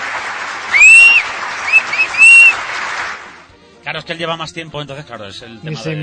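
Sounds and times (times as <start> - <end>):
audience applause: 0.0 - 3.5
speech: 3.9 - 6.0.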